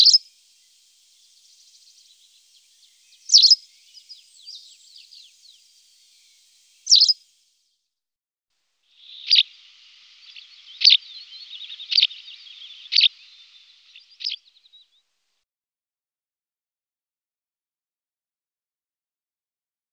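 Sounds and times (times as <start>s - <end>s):
white wagtail calls: 0.0s - 7.3s, 8.9s - 14.9s.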